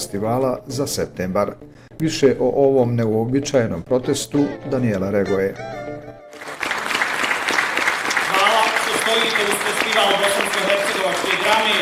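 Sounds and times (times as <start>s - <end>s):
speech: 0.0s - 5.9s
drama festival audience in Zenica clapping in protest: 6.3s - 11.8s.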